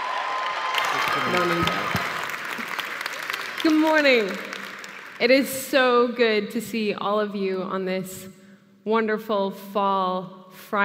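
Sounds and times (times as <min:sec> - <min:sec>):
audience applause at a morning gathering: 0:00.0 - 0:05.2
speech: 0:01.2 - 0:02.0, 0:03.6 - 0:04.5, 0:05.2 - 0:10.8.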